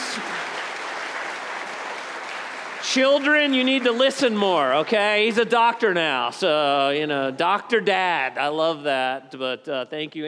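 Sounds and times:
audience applause: 0.0s - 6.0s
speech: 2.9s - 10.2s.

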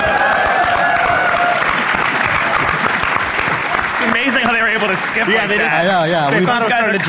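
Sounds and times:
audience applause and cheering: 0.0s - 7.0s.

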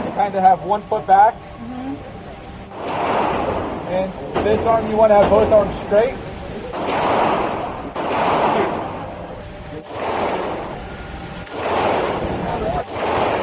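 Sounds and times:
speech: 0.2s - 2.2s, 3.9s - 7.3s, 9.8s - 10.4s
gunshots at a gun range: 2.7s - 5.6s, 6.7s - 13.4s.

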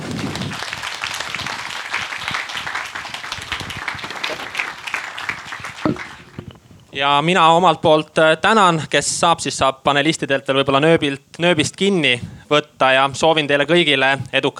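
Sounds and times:
audience applause: 0.0s - 6.5s
speech: 7.0s - 14.5s.

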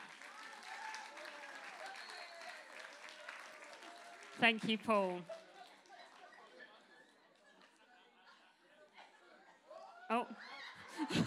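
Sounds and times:
audience applause: 0.0s - 6.6s
speech: 4.4s - 5.4s
laughter: 5.3s - 11.2s.

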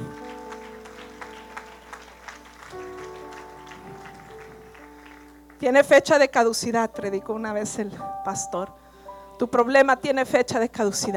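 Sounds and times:
audience applause: 0.0s - 5.6s
speech: 5.6s - 8.8s, 9.4s - 11.1s.

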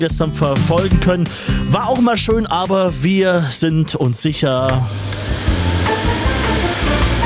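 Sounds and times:
speech: 0.0s - 7.1s
bumps and clicks: 0.5s - 1.6s
vacuum cleaner running: 4.7s - 7.2s.

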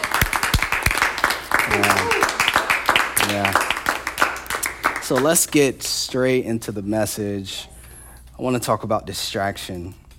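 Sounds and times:
audience clapping: 0.0s - 6.2s
speech: 5.1s - 7.7s, 8.4s - 10.0s.

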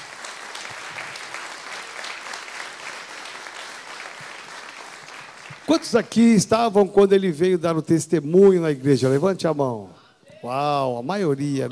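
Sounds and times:
audience applause: 0.0s - 6.3s
speech: 5.7s - 11.6s.

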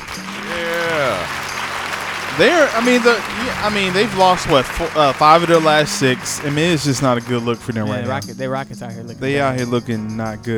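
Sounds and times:
applause: 0.0s - 7.9s
person whooping: 0.3s - 1.3s
speech: 2.4s - 10.5s.

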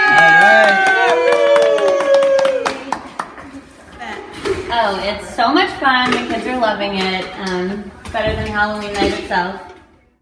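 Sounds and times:
small crowd cheering and whooping for costumes: 0.0s - 3.1s
crowd clapping: 0.0s - 3.6s
speech: 5.1s - 9.7s.

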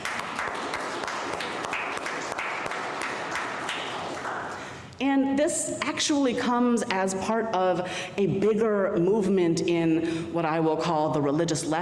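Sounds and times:
audience applauding: 0.0s - 4.6s
speech: 5.1s - 11.7s.

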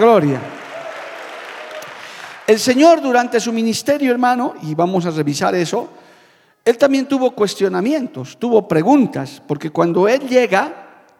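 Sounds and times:
speech: 0.0s - 0.5s, 2.5s - 6.0s, 6.6s - 11.1s
audience applause: 0.0s - 2.7s.

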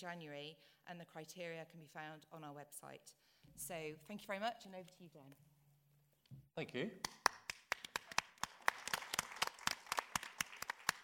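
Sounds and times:
speech: 0.0s - 5.5s, 6.6s - 7.2s
audience clapping: 7.0s - 11.0s.

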